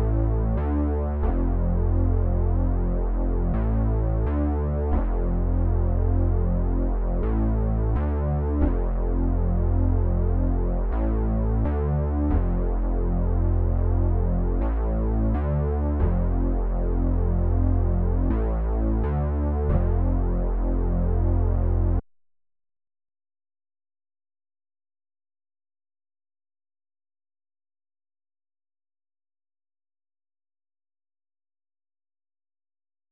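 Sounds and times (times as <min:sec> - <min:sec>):
1980s style F minor bass loop at 130 BPM: 0:00.0 - 0:22.0.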